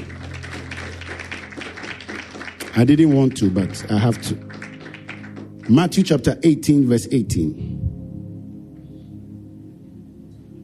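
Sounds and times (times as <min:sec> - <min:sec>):
audience clapping hands: 0:00.0 - 0:06.1
speech: 0:02.8 - 0:04.5, 0:05.7 - 0:07.7.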